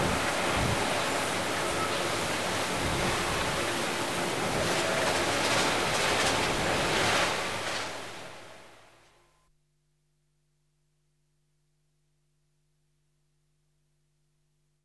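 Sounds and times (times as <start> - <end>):
blinding snowstorm: 0.0 - 8.8.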